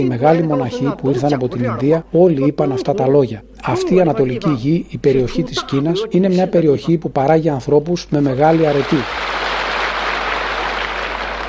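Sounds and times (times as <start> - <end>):
speech: 0.0 - 9.4
audience applause: 8.5 - 11.4.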